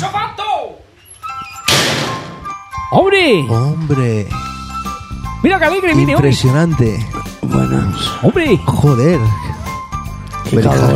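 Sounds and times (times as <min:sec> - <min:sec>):
door opening thunk: 0:01.6 - 0:02.4
speech: 0:02.9 - 0:04.4, 0:05.4 - 0:09.5, 0:10.5 - 0:10.9.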